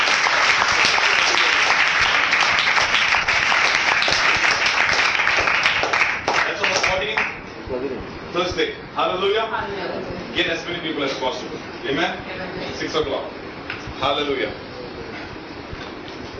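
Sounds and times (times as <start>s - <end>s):
audience applauding: 0.0s - 7.4s
speech: 9.0s - 13.4s, 14.0s - 14.6s.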